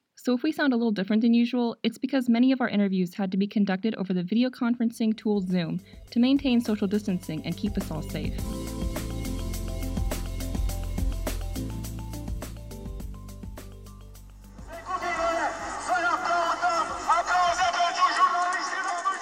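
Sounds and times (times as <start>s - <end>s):
speech: 0.2s - 8.8s
music bed with steady tones and percussive hits: 5.8s - 15.8s
protest crowd shouting and chanting: 14.6s - 19.2s.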